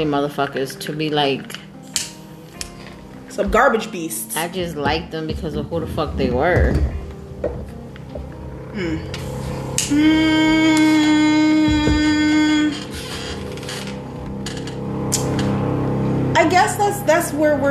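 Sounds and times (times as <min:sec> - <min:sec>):
speech: 0:00.0 - 0:01.6, 0:03.4 - 0:07.7, 0:08.8 - 0:09.3, 0:09.9 - 0:11.2, 0:16.4 - 0:17.6
loud airplane overhead: 0:07.9 - 0:17.6.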